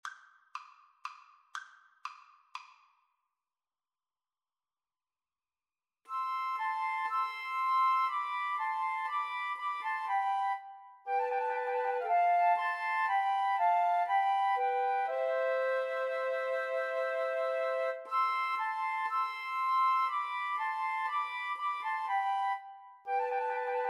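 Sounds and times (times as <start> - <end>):
flute trio playing dances: 6.1 - 23.8.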